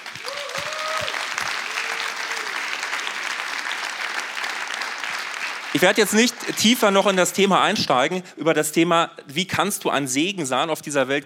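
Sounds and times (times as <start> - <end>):
audience applause: 0.0 - 7.8
speech: 5.7 - 11.2.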